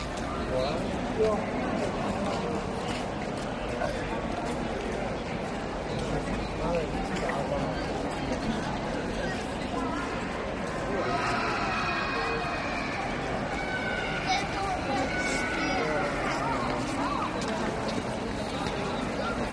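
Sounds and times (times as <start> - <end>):
daytime crowd in a garden on the ramparts in Prague: 0.0 - 19.5.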